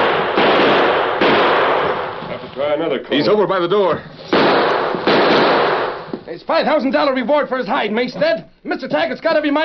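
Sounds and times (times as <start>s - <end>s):
gunshots: 0.0s - 2.4s, 4.2s - 6.2s
speech: 2.7s - 4.6s, 6.3s - 9.6s.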